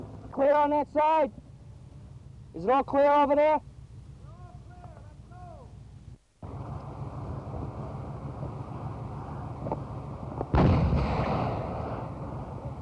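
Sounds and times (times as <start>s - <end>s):
windy rumble: 0.0s - 12.8s
speech: 0.4s - 1.4s, 2.6s - 3.7s
mine destroyed by Marines during Operation Pegasus exploding: 10.5s - 12.6s.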